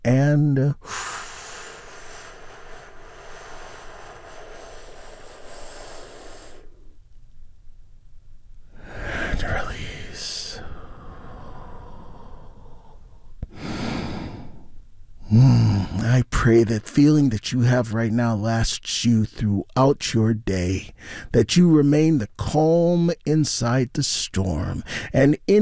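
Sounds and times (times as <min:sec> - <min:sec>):
speech: 0:00.0 - 0:01.0, 0:16.5 - 0:25.6
deep slow breathing during a guided calming exercise: 0:00.6 - 0:07.1, 0:08.6 - 0:16.2, 0:20.9 - 0:21.4, 0:24.8 - 0:25.2.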